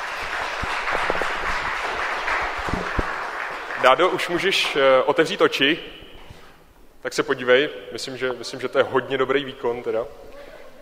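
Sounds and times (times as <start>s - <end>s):
audience clapping: 0.0s - 5.0s
speech: 3.8s - 6.0s, 7.0s - 10.3s.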